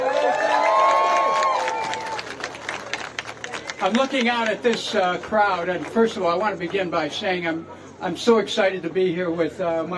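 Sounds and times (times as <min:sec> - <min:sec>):
crowd cheering: 0:00.0 - 0:04.3
scattered clapping: 0:00.4 - 0:06.9
speech: 0:03.8 - 0:09.9.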